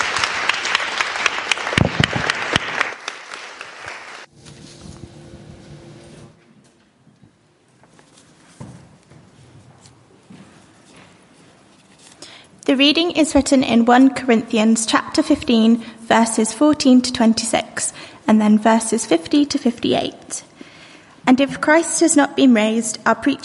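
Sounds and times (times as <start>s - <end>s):
round of applause: 0.0s - 4.3s
speech: 12.8s - 20.5s, 21.3s - 23.4s.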